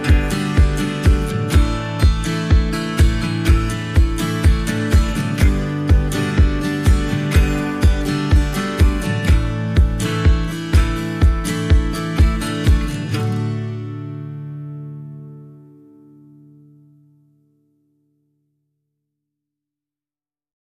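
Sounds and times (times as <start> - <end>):
reduced drums: 0.0 - 13.2
guitar accompaniment: 0.0 - 18.2.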